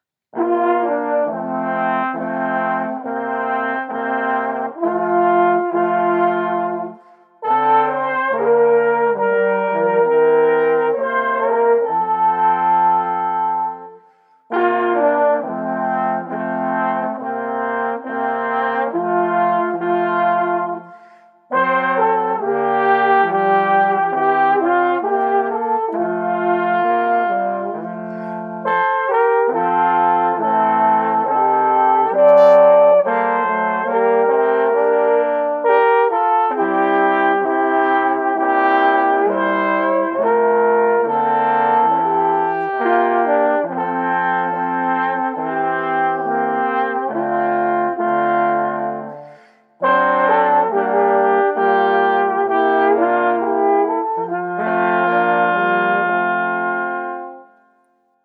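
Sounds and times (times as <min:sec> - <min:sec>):
wind quartet playing: 0:00.4 - 0:20.9, 0:21.5 - 0:57.5.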